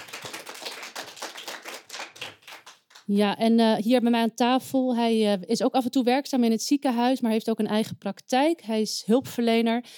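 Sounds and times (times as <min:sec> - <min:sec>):
audience applause: 0:00.0 - 0:03.0
speech: 0:03.1 - 0:09.9.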